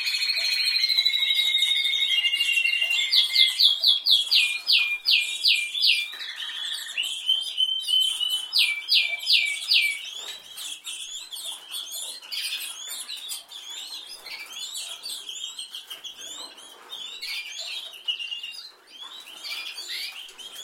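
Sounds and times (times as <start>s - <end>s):
canary song with loud rapid rattling trill: 0.0s - 20.6s
several birds chirping and twittering: 0.0s - 20.6s.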